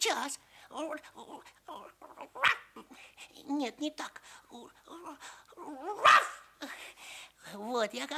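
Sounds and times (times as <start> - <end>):
speech: 0.0 - 8.1
puppy barking: 6.0 - 6.4.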